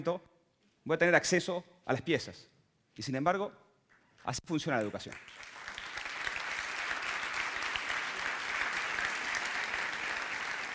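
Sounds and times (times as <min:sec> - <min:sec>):
speech: 0:00.0 - 0:03.6, 0:04.2 - 0:05.5
audience applause: 0:05.1 - 0:10.7.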